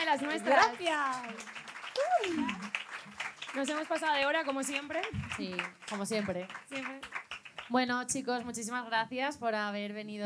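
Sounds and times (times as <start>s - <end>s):
crowd applause: 0.0s - 7.7s
speech: 0.1s - 2.9s, 3.6s - 10.2s
person whooping: 1.9s - 2.7s.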